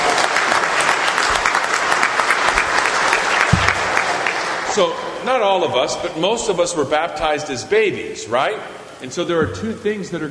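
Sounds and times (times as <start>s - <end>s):
audience applause: 0.0s - 5.1s
speech: 4.8s - 10.3s.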